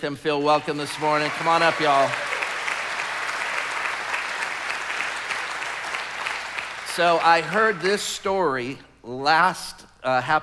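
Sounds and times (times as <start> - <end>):
speech: 0.0 - 2.2, 7.0 - 10.4
audience applause: 0.5 - 7.8.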